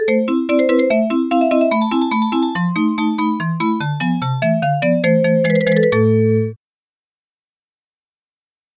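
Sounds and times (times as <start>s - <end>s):
vibraphone: 0.0s - 6.6s.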